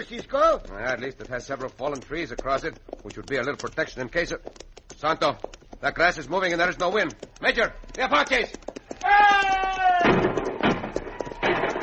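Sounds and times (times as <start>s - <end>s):
speech: 0.0s - 10.2s
person shouting: 9.0s - 10.1s
gunfire sound effect in a western radio drama ambush: 10.0s - 11.8s.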